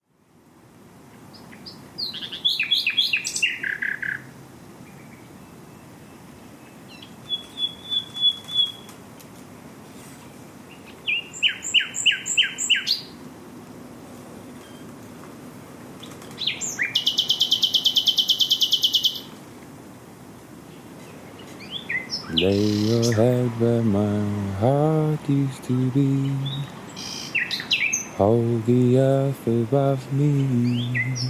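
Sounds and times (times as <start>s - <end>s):
faint background hiss: 0.0s - 31.2s
Common Nightingale singing: 1.1s - 9.0s, 10.6s - 13.2s, 16.0s - 19.4s, 20.6s - 31.2s
speech: 22.5s - 26.7s, 28.2s - 31.2s.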